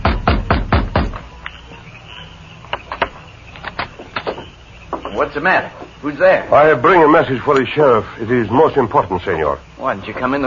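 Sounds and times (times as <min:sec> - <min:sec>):
heavy fists pounding on a wooden door: 0:00.0 - 0:01.2
speech: 0:05.2 - 0:10.4.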